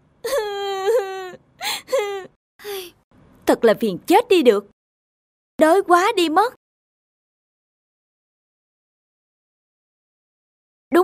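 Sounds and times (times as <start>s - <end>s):
child crying with high-pitched wails and gasping sobs: 0.2s - 2.4s
speech: 3.5s - 4.8s, 5.6s - 6.6s.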